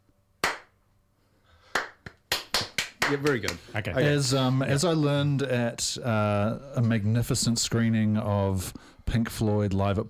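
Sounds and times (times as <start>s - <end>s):
two people clapping in a studio: 0.4s - 0.8s, 1.7s - 3.7s
speech: 3.1s - 10.0s.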